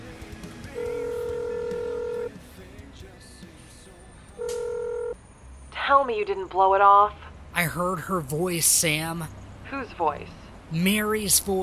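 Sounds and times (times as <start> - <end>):
phone dialing electronic beeps: 0.7 - 2.4, 4.4 - 5.2
speech: 5.9 - 11.6.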